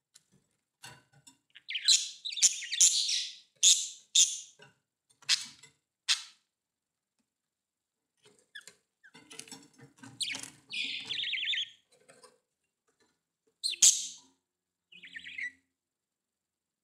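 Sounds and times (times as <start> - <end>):
budgerigar chirps and warbling: 1.6 - 4.6, 6.1 - 6.4, 10.2 - 11.8, 13.6 - 14.2, 14.9 - 15.6.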